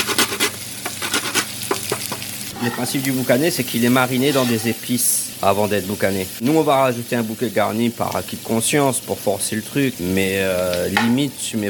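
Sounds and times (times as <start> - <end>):
utensil stirring and scraping a pan deglazed with onion, garlic, nutmeg and cloves: 0.0 - 5.3
frying hiss: 0.0 - 11.6
speech: 2.6 - 11.6.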